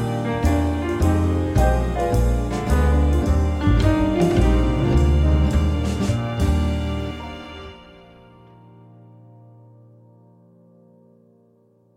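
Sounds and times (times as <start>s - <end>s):
spiritual band backing music for churches: 0.0s - 8.2s.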